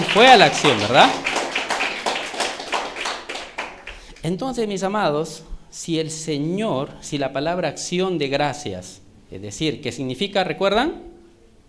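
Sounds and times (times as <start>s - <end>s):
audience applauding: 0.0s - 4.2s
speech: 0.2s - 1.3s, 4.2s - 11.1s.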